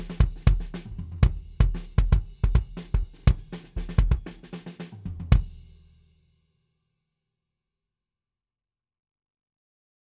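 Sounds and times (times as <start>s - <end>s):
kick drum hits recorded on head: 0.0s - 4.3s.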